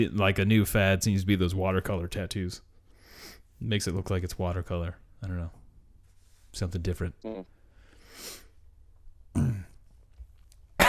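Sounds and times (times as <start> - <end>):
speech: 0.0 - 5.6, 6.5 - 7.6
person coughing from something caught in the throat: 9.4 - 9.8.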